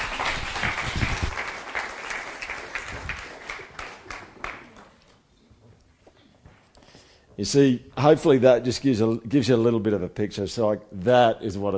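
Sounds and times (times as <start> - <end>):
crowd applause: 0.0 - 5.0
speech: 7.4 - 11.7.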